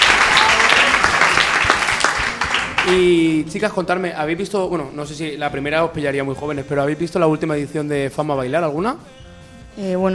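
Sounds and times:
studio audience applauding a guest: 0.0 - 3.2
speech: 2.9 - 9.2, 9.8 - 10.1.

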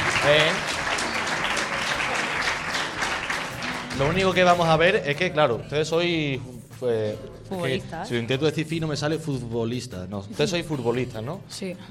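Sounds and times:
classroom applause: 0.0 - 4.7
speech: 0.2 - 0.8, 4.0 - 11.9.

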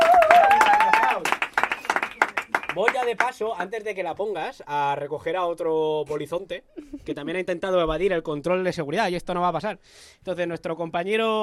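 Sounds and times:
audience clapping for a performer at a Spanish-language show: 0.0 - 3.6
speech: 2.8 - 11.4.

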